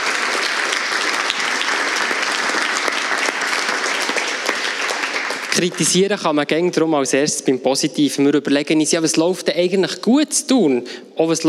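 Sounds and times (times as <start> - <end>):
audience applause: 0.0 - 6.1
speech: 5.6 - 11.4.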